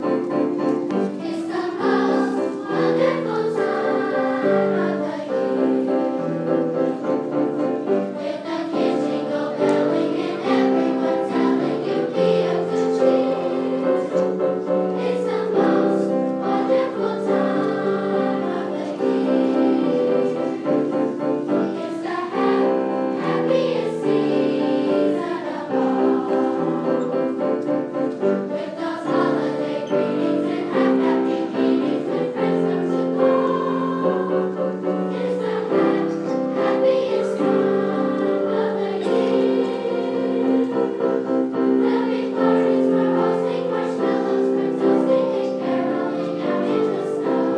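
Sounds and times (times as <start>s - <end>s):
christmas choir singing: 0.0s - 47.5s.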